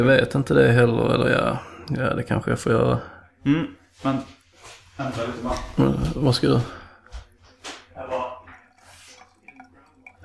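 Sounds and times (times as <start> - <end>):
speech: 0.0 - 6.8
glass and dishes clinking: 8.4 - 10.2
water running into a glass: 8.4 - 10.2.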